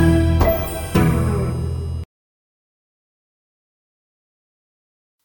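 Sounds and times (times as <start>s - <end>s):
mysterious Halloween comedy music: 0.0s - 2.0s.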